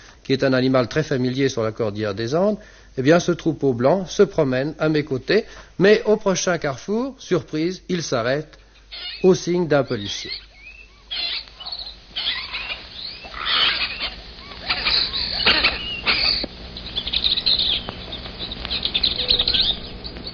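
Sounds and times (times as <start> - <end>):
speech: 0.3 - 10.5
tame parakeets calling in the streets of Cusco: 8.6 - 20.3.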